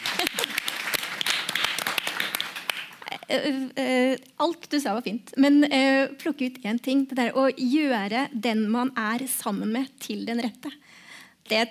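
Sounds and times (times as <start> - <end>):
audience clapping: 0.0 - 3.1
speech: 3.3 - 10.9, 11.5 - 11.6.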